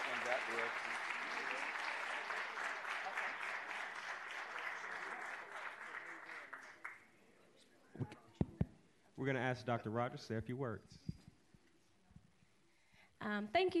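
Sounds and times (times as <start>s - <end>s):
round of applause: 0.0s - 7.3s
speech: 0.3s - 1.8s, 9.2s - 11.1s, 13.3s - 13.7s.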